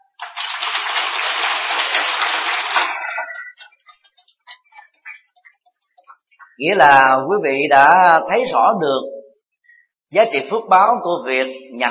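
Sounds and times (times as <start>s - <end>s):
audience applauding at a Buddhist dharma talk: 0.1s - 5.2s
speech: 6.6s - 9.2s, 10.1s - 11.8s.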